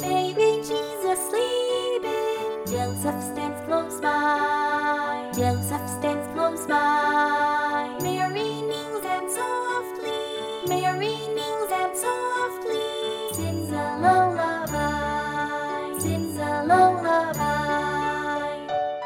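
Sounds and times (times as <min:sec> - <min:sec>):
voices singing a lullaby: 0:00.0 - 0:18.9.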